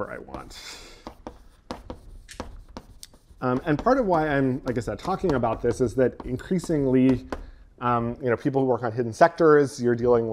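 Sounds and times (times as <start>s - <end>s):
speech: 0.0s - 0.9s, 3.4s - 10.3s
writing on a board: 0.0s - 7.6s.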